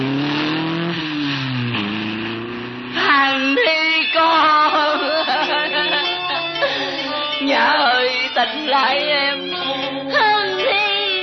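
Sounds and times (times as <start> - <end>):
car engine droning as the car drives off quickly: 0.0 - 11.2
laughter: 4.8 - 7.4.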